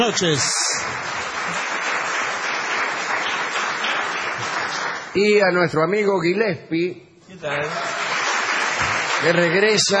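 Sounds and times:
speech: 0.0 - 1.6, 5.2 - 7.9, 9.2 - 9.9
audience applause: 0.0 - 5.2, 7.6 - 9.9.

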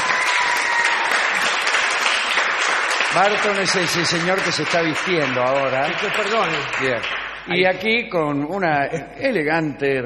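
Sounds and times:
audience applause ovation for a guest on a show: 0.0 - 7.6
speech: 3.2 - 10.0.

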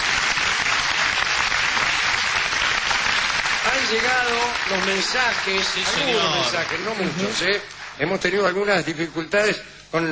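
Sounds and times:
audience applause: 0.0 - 8.8
speech: 3.9 - 10.1.

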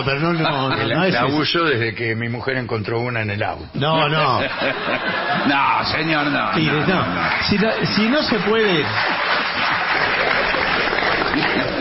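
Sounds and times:
laughter: 0.0 - 1.2, 3.9 - 11.8
speech: 0.0 - 9.4
audience applause: 4.9 - 11.8.

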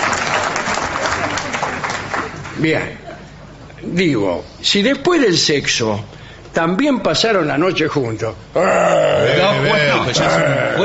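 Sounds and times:
audience applause: 0.0 - 2.6
speech: 2.6 - 3.0, 3.8 - 10.8.

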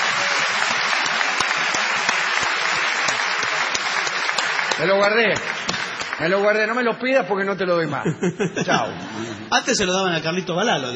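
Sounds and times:
audience applause: 0.0 - 6.7
speech: 4.8 - 10.9
laughter: 7.8 - 9.7.

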